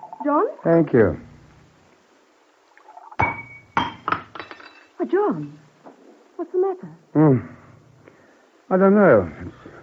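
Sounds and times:
speech: 0:00.2 - 0:01.3, 0:05.2 - 0:05.6, 0:06.4 - 0:07.6, 0:08.7 - 0:09.6
wine glass slipping from hand, clinking: 0:03.2 - 0:05.6.

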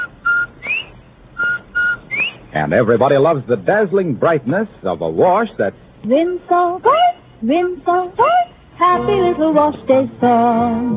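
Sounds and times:
bobwhite quail whistling call: 0:00.0 - 0:02.5
speech: 0:02.6 - 0:10.9.

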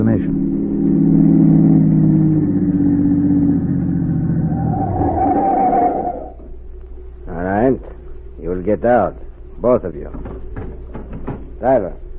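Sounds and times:
car engine driving and revving: 0:00.0 - 0:06.5
speech: 0:08.8 - 0:10.4, 0:11.6 - 0:12.0.

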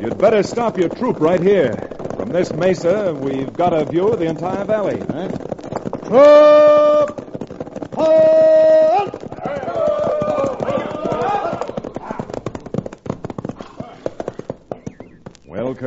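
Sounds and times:
speech: 0:00.0 - 0:07.2, 0:08.0 - 0:09.2
horses and wagon train approaching: 0:00.0 - 0:15.8.

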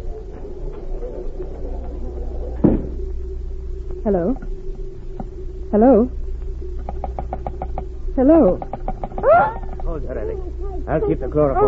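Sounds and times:
door closing thud: 0:02.6 - 0:03.0
speech: 0:04.0 - 0:04.5, 0:05.7 - 0:06.2, 0:08.2 - 0:08.8, 0:09.4 - 0:11.6.

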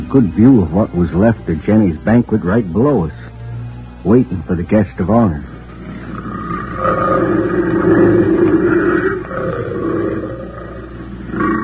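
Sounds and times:
speech: 0:00.1 - 0:03.2, 0:04.0 - 0:05.5, 0:06.8 - 0:09.9
female big cat roaring in the jungle: 0:05.4 - 0:11.6.

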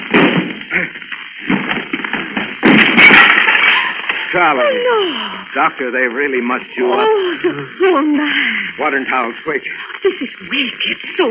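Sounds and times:
door crashing down: 0:00.0 - 0:04.5
speech: 0:04.4 - 0:11.2.

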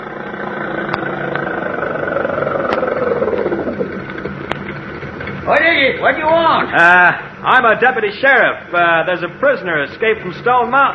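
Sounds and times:
car engine idling: 0:00.0 - 0:05.4
speech: 0:05.5 - 0:10.9.

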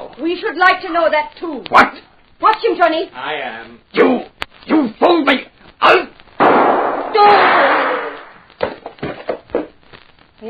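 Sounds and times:
speech: 0:00.2 - 0:06.1
gunshots in a radio drama: 0:06.4 - 0:08.6.

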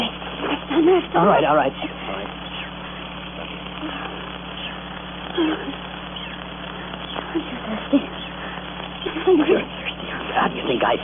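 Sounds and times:
monkeys chattering in the jungle: 0:00.0 - 0:11.0
speech: 0:01.0 - 0:02.4, 0:05.4 - 0:05.8, 0:07.4 - 0:08.2, 0:09.2 - 0:11.0.

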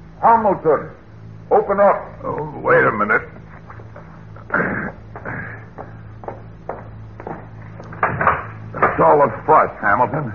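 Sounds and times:
speech: 0:00.2 - 0:03.4, 0:09.0 - 0:10.3
knocking on a door: 0:05.7 - 0:08.4.

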